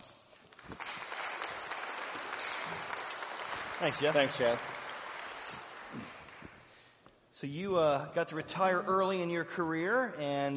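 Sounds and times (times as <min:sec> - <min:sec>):
audience applause welcoming a speaker: 0:00.5 - 0:06.5
speech: 0:03.8 - 0:04.8, 0:07.4 - 0:10.5.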